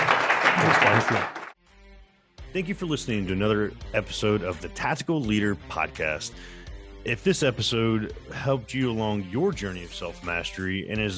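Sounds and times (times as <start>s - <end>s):
audience applause: 0.0s - 1.6s
speech: 0.8s - 1.4s, 2.5s - 11.1s.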